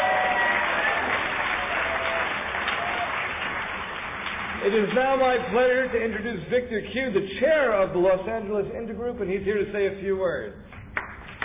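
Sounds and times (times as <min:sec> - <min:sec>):
audience applause: 0:00.0 - 0:05.3
speech: 0:04.6 - 0:10.7.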